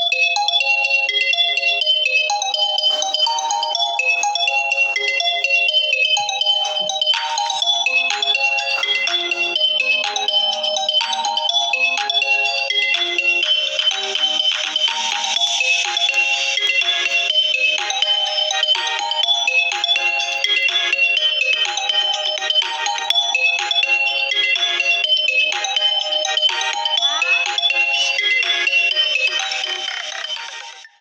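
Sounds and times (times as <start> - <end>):
Vivo official phone ringtone: 0.0 - 31.0.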